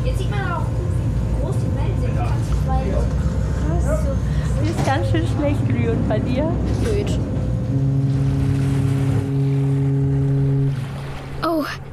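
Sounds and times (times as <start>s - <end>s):
boat engine droning: 0.0s - 11.9s
wind: 0.0s - 11.9s
crashing water: 7.1s - 11.9s.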